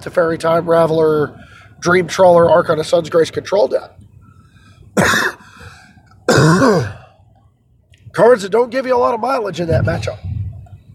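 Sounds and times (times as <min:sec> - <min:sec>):
speech: 0:00.0 - 0:04.1, 0:05.0 - 0:05.3, 0:06.4 - 0:07.0, 0:08.2 - 0:10.3
person sneezing: 0:05.0 - 0:05.5.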